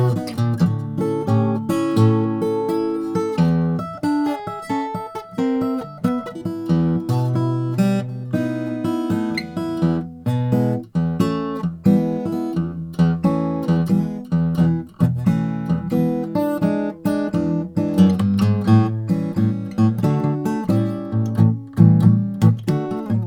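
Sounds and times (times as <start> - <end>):
parlor acoustic guitar with wider nut: 0.0 - 23.2.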